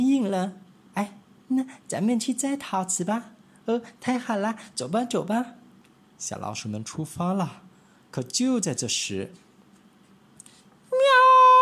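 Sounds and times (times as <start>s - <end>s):
speech: 0.0s - 5.6s, 6.2s - 9.4s
person imitating a cat meow: 10.9s - 11.6s.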